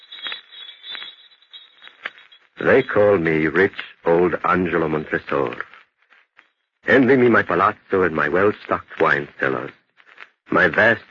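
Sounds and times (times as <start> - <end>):
jester's bells jingling: 0.0 - 3.9
speech: 2.6 - 5.7, 6.9 - 9.8, 10.5 - 11.0.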